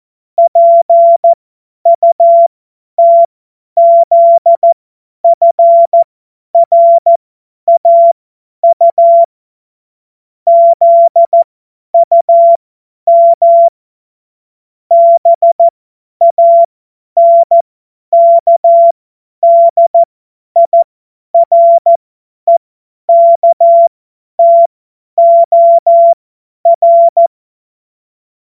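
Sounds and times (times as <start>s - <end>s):
CW Morse code beeps: 0.4s - 9.3s, 10.5s - 13.7s, 14.9s - 17.6s, 18.2s - 20.8s, 21.4s - 27.3s.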